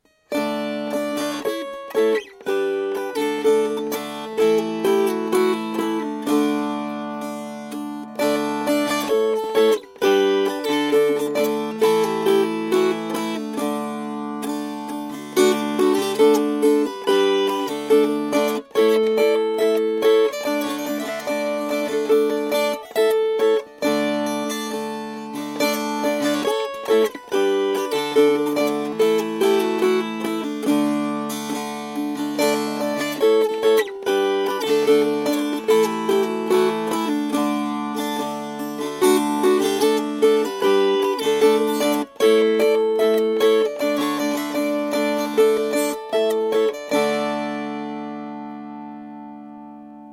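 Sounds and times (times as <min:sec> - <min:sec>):
strummed strings: 0:00.0 - 0:50.1.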